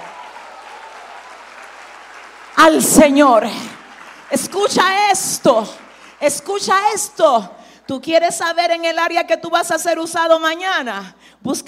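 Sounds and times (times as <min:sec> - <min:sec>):
audience applause: 0:00.0 - 0:06.7
speech: 0:02.6 - 0:03.7, 0:04.3 - 0:11.6.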